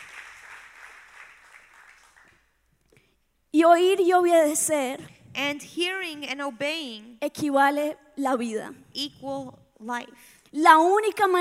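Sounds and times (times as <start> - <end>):
audience applause: 0.0 - 2.4
speech: 3.6 - 11.4.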